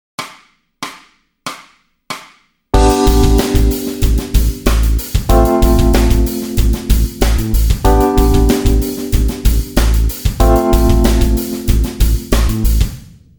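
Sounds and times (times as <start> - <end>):
backing track: 2.8 - 13.0.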